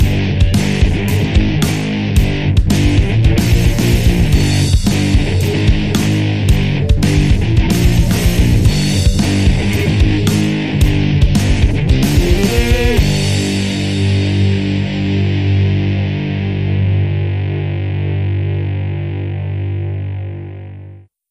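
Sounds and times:
fuzz distorted rock sound: 0:00.0 - 0:21.1.

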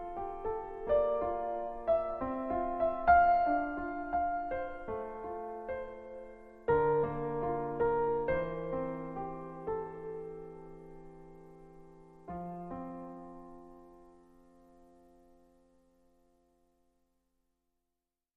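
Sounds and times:
solo piano piece: 0:00.0 - 0:17.0.

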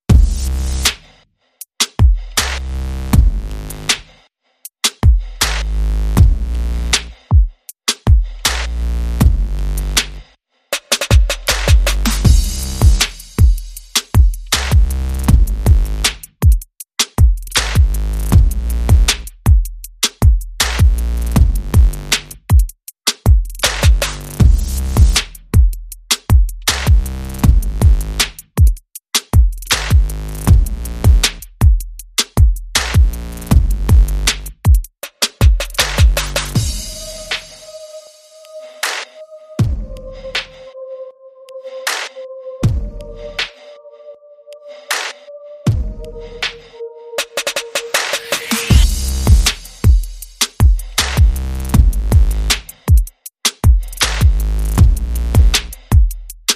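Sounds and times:
bass: 0:00.0 - 0:01.2, 0:02.0 - 0:04.2, 0:05.1 - 0:07.3, 0:08.1 - 0:10.3, 0:11.3 - 0:16.4, 0:17.3 - 0:22.5, 0:23.3 - 0:28.6, 0:29.4 - 0:34.6, 0:35.6 - 0:37.6, 0:39.6 - 0:40.6, 0:48.5 - 0:52.8, 0:53.6 - 0:56.5
drums: 0:00.1 - 0:01.1, 0:01.8 - 0:02.6, 0:03.2 - 0:04.1, 0:04.8 - 0:40.6, 0:44.9 - 0:56.5.

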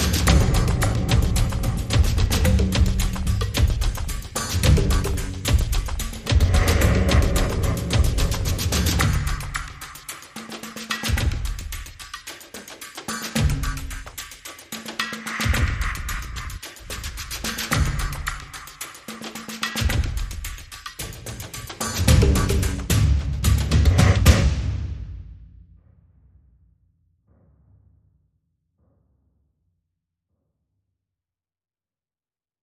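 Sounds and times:
drums: 0:00.0 - 0:25.8.

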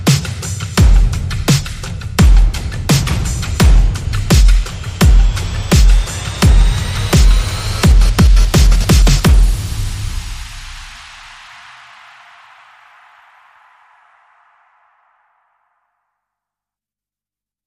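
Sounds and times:
drum hits: 0:00.0 - 0:11.4.

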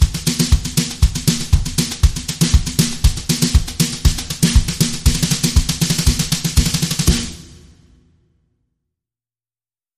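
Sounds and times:
drum brushes: 0:00.0 - 0:07.8.

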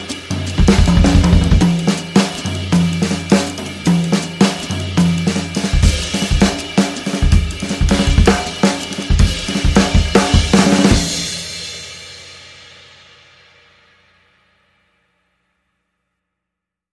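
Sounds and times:
fast jazz: 0:00.0 - 0:11.4.

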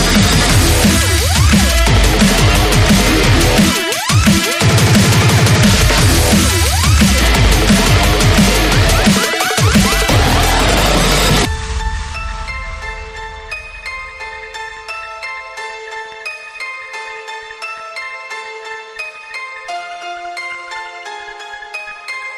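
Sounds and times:
riser: 0:00.0 - 0:14.9.

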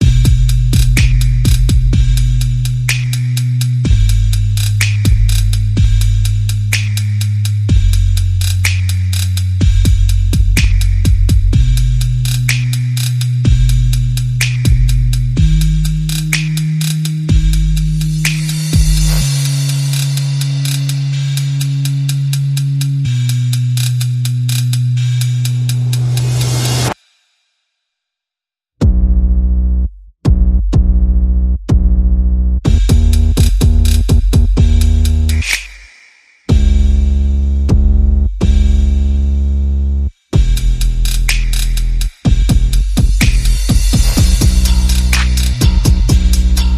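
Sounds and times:
bass: 0:00.0 - 0:27.0, 0:28.8 - 0:35.7, 0:36.5 - 0:46.7
percussion: 0:00.0 - 0:27.6, 0:30.2 - 0:32.0, 0:32.6 - 0:39.4, 0:40.1 - 0:46.7.

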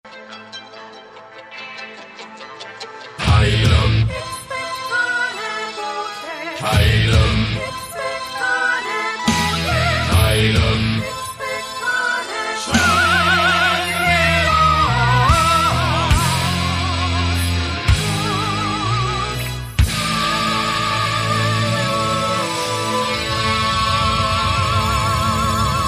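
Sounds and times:
metal opera music: 0:00.2 - 0:25.8.

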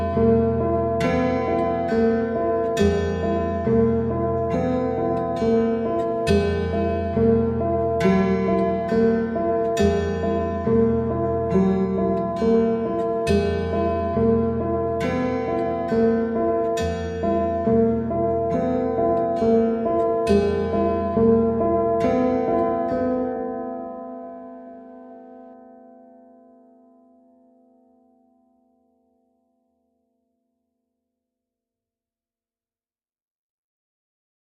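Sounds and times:
dulcimer: 0:00.0 - 0:27.3
piano: 0:00.0 - 0:29.0.

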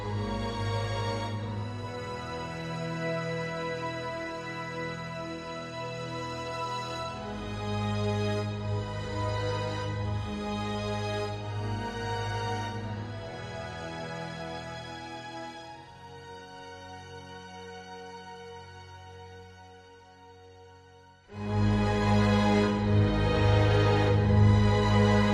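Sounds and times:
orchestral music: 0:00.0 - 0:14.7, 0:21.3 - 0:25.3.

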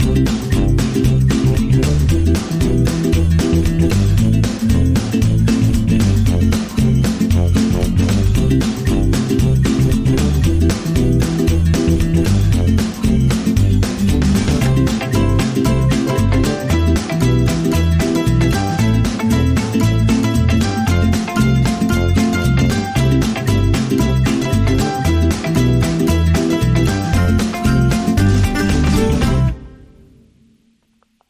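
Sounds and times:
summer vibes music: 0:00.0 - 0:30.1.

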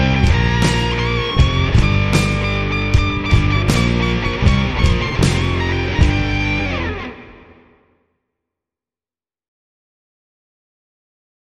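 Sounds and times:
rock music: 0:00.0 - 0:08.0.

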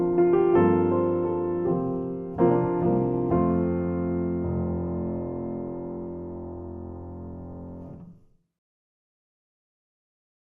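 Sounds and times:
solo piano: 0:00.0 - 0:08.4.

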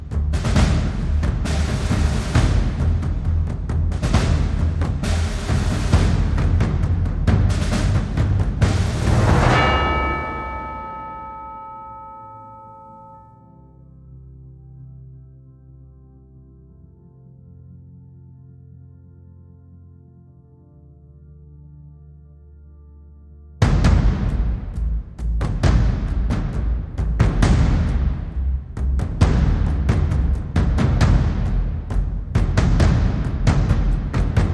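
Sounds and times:
drums: 0:00.0 - 0:12.0, 0:23.6 - 0:34.5
bass: 0:00.0 - 0:34.5.

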